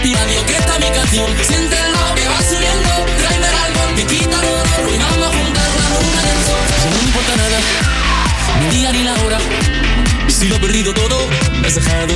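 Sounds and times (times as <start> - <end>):
latin music: 0.0 - 12.1.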